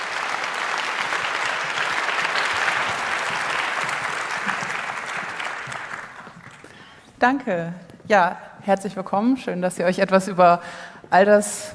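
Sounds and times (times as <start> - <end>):
applause: 0.0 - 7.0
speech: 7.2 - 11.7.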